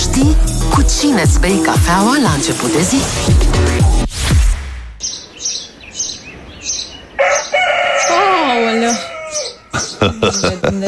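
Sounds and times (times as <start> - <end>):
speech: 0.2 - 3.9, 10.0 - 10.8
rooster crowing: 7.1 - 9.8
laughter: 9.7 - 10.8.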